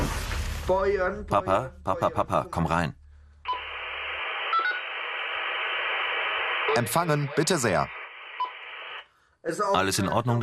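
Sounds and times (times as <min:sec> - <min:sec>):
speech: 0:00.7 - 0:03.0, 0:06.8 - 0:08.0, 0:09.4 - 0:10.4
two-way radio static hissing: 0:03.5 - 0:09.1.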